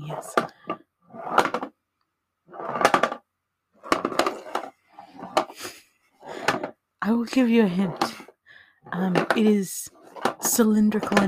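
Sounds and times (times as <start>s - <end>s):
speech: 0.1s - 0.6s, 7.1s - 8.1s, 9.0s - 11.2s
small test tube rolling in a box: 2.5s - 3.2s, 3.8s - 11.2s.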